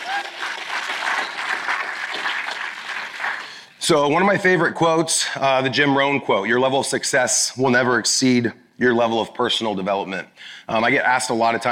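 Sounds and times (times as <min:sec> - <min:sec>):
audience applause: 0:00.0 - 0:03.7
speech: 0:03.8 - 0:11.7.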